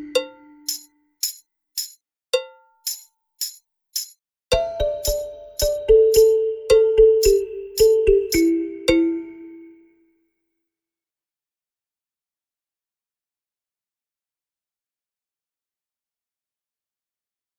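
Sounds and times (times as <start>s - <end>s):
balafon: 0.0s - 0.6s, 4.5s - 9.8s.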